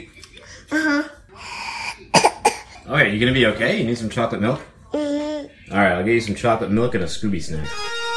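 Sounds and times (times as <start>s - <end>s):
speech: 0.0s - 1.2s, 2.9s - 4.7s, 5.7s - 8.0s
person coughing: 2.1s - 2.8s.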